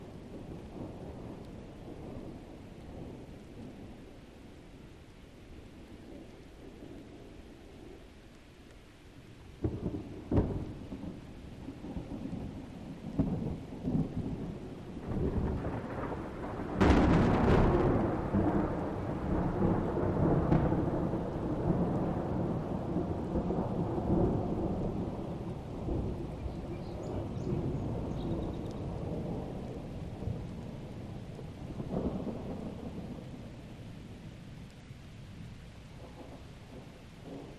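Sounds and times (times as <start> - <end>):
steady very light distant thunder: 9.6 - 34.3, 36.0 - 37.5.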